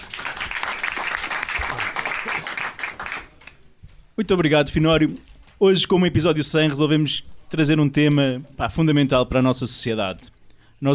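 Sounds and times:
applause: 0.0s - 3.5s
speech: 4.2s - 10.9s.

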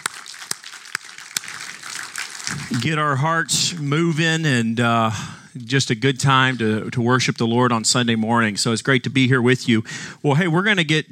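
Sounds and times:
audience applause: 0.0s - 3.2s
speech: 2.7s - 11.1s.

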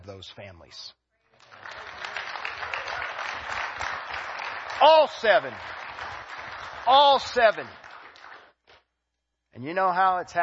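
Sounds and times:
speech: 0.1s - 1.0s, 4.8s - 5.8s, 6.8s - 7.8s, 9.6s - 10.4s
crowd applauding: 1.4s - 8.6s.

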